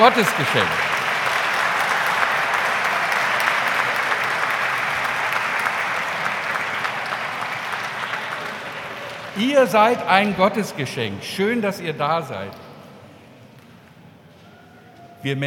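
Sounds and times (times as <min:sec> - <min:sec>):
speech: 0:00.0 - 0:01.0, 0:09.4 - 0:12.6, 0:15.2 - 0:15.4
audience applause: 0:00.0 - 0:10.3.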